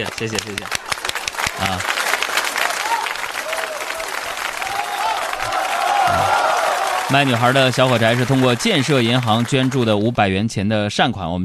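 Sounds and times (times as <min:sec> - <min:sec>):
speech: 0:00.0 - 0:00.9, 0:01.6 - 0:02.0, 0:06.1 - 0:06.4, 0:07.1 - 0:11.4
audience applause: 0:00.0 - 0:10.2.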